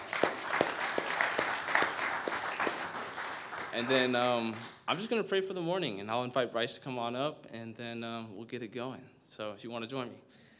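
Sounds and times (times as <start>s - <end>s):
audience clapping: 0.0s - 4.9s
speech: 3.8s - 10.4s.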